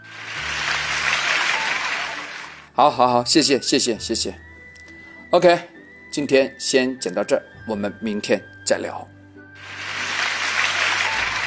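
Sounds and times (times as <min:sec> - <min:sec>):
applause: 0:00.0 - 0:02.7, 0:09.6 - 0:11.4
speech: 0:02.8 - 0:04.5, 0:05.3 - 0:09.2.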